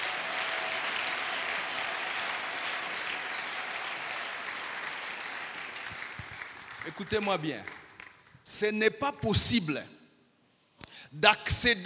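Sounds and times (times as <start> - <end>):
church congregation clapping during a worship service: 0.0 - 8.6
speech: 6.8 - 7.8, 8.5 - 10.0, 11.1 - 11.8.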